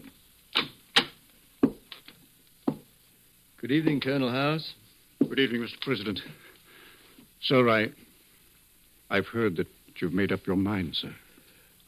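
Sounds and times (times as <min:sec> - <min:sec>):
footsteps on a hard floor in the Lincoln Study: 0:01.6 - 0:01.8, 0:02.7 - 0:02.9, 0:05.2 - 0:05.4
speech: 0:03.6 - 0:06.4, 0:07.4 - 0:08.0, 0:09.1 - 0:11.2.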